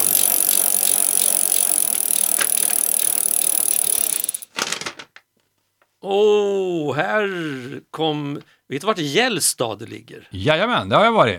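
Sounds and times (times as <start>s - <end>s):
raffle tombola drum spinning: 0.0s - 4.9s
speech: 6.0s - 11.3s.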